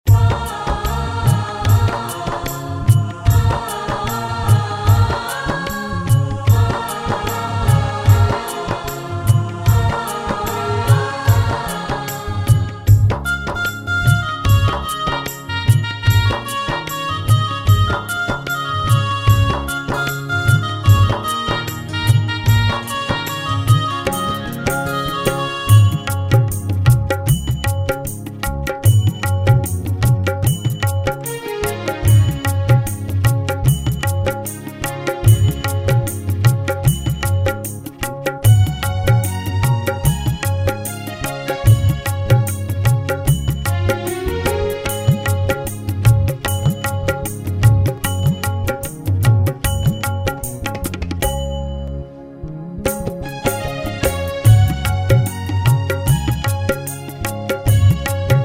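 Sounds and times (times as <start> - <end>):
karaoke music: 0.1 - 51.2, 52.6 - 58.4.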